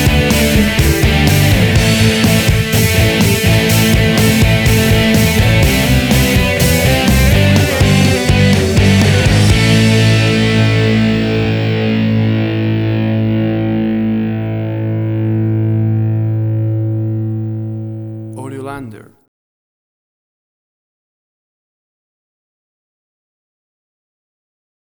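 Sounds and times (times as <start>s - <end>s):
rock music: 0.0s - 18.9s.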